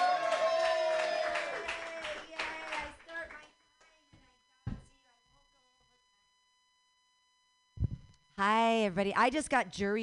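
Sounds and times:
small comedy-workshop audience clapping: 0.0s - 4.0s
speech: 8.4s - 10.0s.

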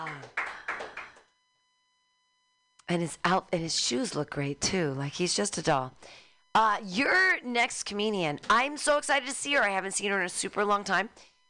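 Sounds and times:
audience clapping: 0.0s - 1.3s
speech: 2.9s - 11.3s.

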